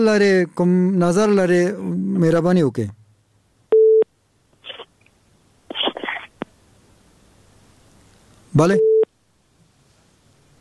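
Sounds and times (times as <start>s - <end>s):
speech: 0.0s - 3.0s, 8.5s - 8.9s
telephone tone from a failed radio call-in: 3.7s - 4.1s, 8.8s - 9.1s.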